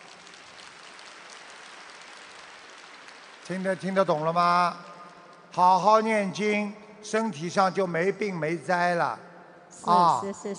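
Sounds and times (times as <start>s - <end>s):
audience applause: 0.0s - 5.7s
speech: 3.5s - 4.9s, 5.5s - 10.5s.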